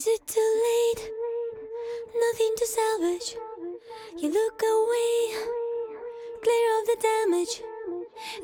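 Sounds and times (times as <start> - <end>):
a cappella vocal loop: 0.0 - 8.4.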